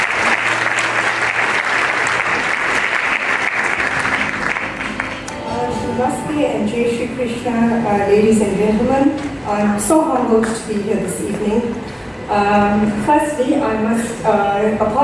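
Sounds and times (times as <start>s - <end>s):
round of applause: 0.0s - 5.4s
speech: 6.6s - 15.0s.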